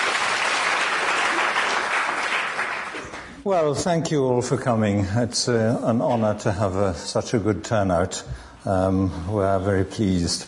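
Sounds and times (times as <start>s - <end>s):
audience round of applause: 0.0s - 3.3s
speech: 3.4s - 10.4s.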